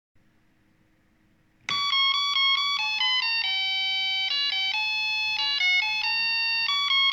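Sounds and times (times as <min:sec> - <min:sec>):
Tesla plastic household doorbell melody: 0:01.7 - 0:07.1.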